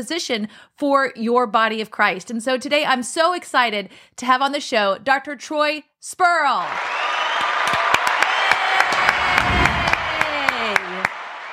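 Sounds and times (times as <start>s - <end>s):
speech: 0.0s - 7.2s
clapping in the intro: 6.6s - 11.5s.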